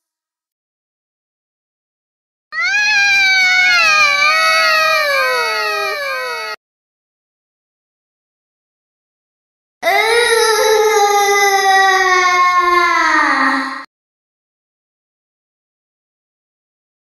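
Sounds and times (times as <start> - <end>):
creepy little girl voice: 2.6 - 6.6, 9.8 - 13.9.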